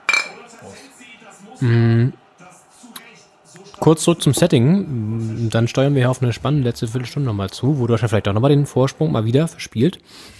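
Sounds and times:
glasses clinking in a toast: 0.0s - 0.7s
voices: 0.0s - 9.8s
speech: 0.6s - 2.2s, 3.8s - 10.3s.

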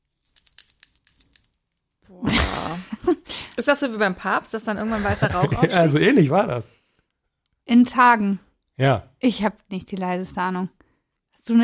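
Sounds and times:
small bell jingling: 0.0s - 2.0s
speech: 2.1s - 6.8s, 7.7s - 10.8s, 11.4s - 11.6s
laughter: 4.8s - 6.5s.

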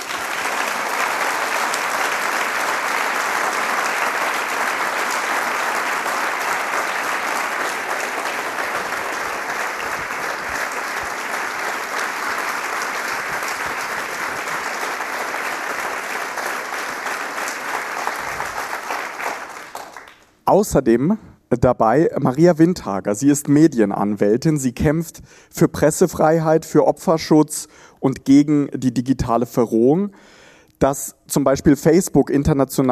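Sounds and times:
audience applause: 0.0s - 20.4s
speech: 20.5s - 32.9s.

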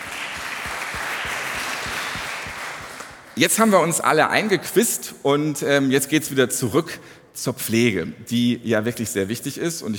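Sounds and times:
audience applause: 0.0s - 3.4s
speech: 3.4s - 9.9s.

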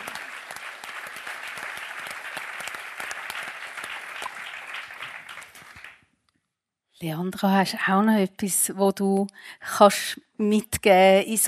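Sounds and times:
audience applause: 0.0s - 6.0s
speech: 7.0s - 11.4s.

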